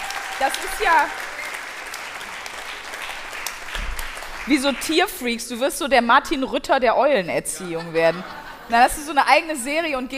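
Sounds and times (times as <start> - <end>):
applause: 0.0 - 5.1
speech: 0.4 - 1.3, 4.5 - 10.1
laughter: 7.5 - 9.1.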